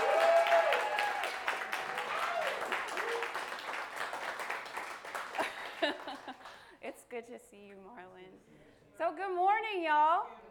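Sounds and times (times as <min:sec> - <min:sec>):
crowd whooping and cheering: 0:00.0 - 0:03.8
crowd applauding: 0:00.0 - 0:06.7
speech: 0:07.1 - 0:10.4.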